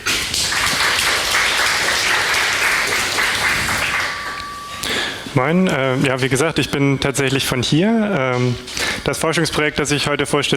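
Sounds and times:
audience applause: 0.0 - 4.9
speech: 5.3 - 10.5.

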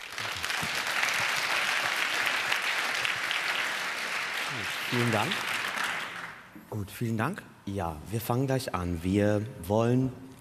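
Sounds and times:
audience applause: 0.0 - 6.5
speech: 4.6 - 5.5, 6.7 - 10.3.

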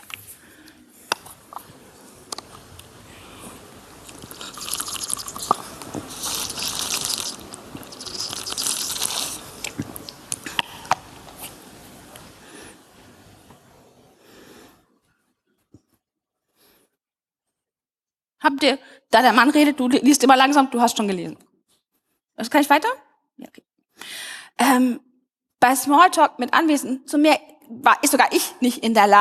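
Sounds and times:
breaths: 0.2 - 1.3, 14.2 - 15.0, 18.8 - 19.1, 23.9 - 24.6
speaker pouring a drink: 4.0 - 11.2
speech: 18.6 - 21.4, 22.4 - 29.1.

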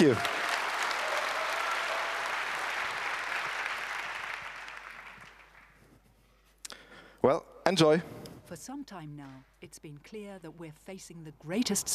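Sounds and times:
speech: 0.0 - 0.4, 7.2 - 11.9
audience applause: 0.0 - 5.9.

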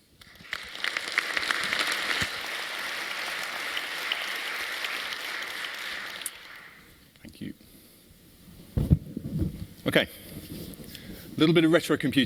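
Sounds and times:
audience clapping to welcome a speaker to a retro-computing talk: 0.2 - 7.0
speech: 9.9 - 10.2, 11.4 - 12.2.

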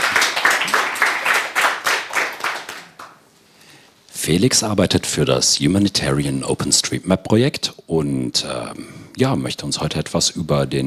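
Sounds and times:
audience applause: 0.0 - 3.2
speech: 4.2 - 10.8.

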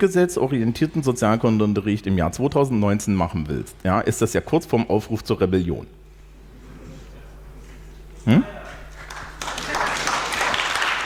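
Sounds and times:
speech: 0.0 - 6.0, 8.2 - 8.6
audience applause: 8.6 - 11.0.

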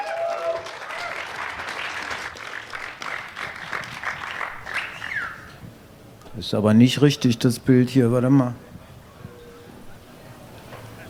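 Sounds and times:
audience applause: 0.0 - 5.4
speech: 6.4 - 8.6.

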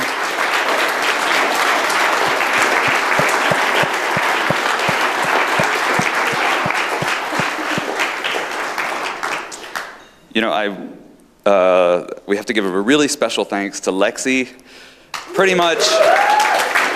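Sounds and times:
audience applause: 0.0 - 9.8, 15.8 - 16.9
speech: 10.4 - 14.8, 15.4 - 16.3.

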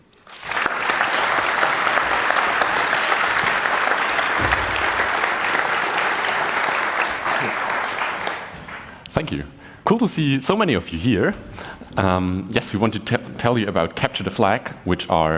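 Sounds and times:
audience applause: 0.0 - 9.1
speech: 9.2 - 15.3.

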